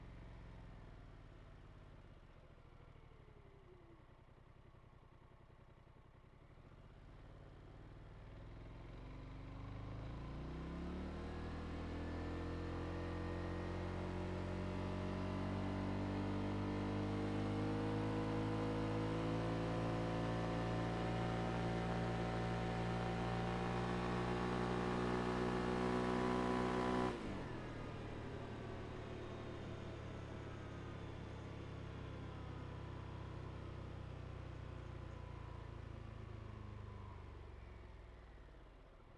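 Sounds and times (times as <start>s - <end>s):
ATV engine driving onto onboard ramps and stopping: 8.2s - 39.1s.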